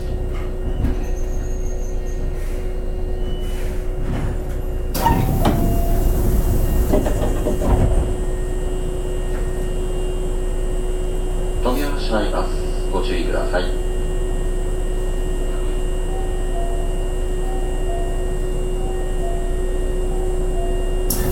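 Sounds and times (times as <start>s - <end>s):
train clunks and rattling: 0.0s - 9.7s
Hankyu 7000 series local train running: 0.0s - 21.3s.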